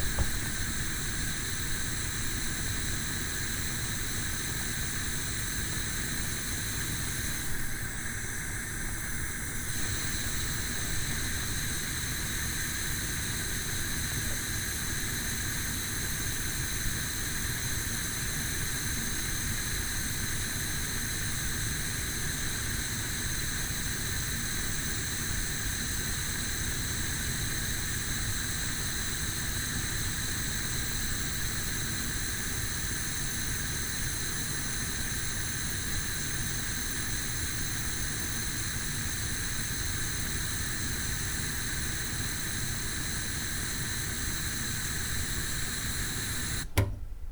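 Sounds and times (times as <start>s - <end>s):
gas flame: 0.0s - 47.2s.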